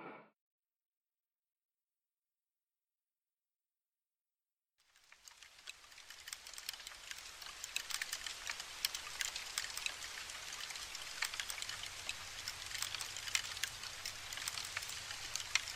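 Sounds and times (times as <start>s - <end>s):
powder post beetles chewing wood: 4.9s - 15.7s.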